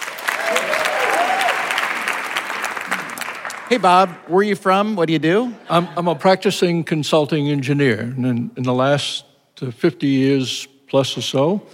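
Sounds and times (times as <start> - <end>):
studio audience applause welcoming a contestant: 0.0 - 4.2
speech: 3.7 - 11.7.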